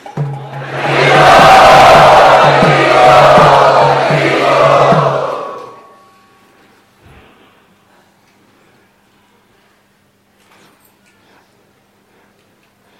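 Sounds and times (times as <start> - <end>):
crowd cheering and shouting to welcome guests at a gathering: 0.0 - 6.0.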